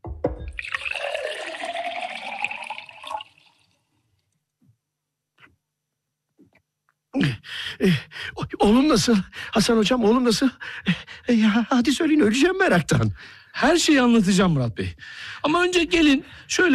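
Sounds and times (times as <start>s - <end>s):
water pouring into a glass: 0.5s - 3.9s
speech: 7.2s - 16.7s.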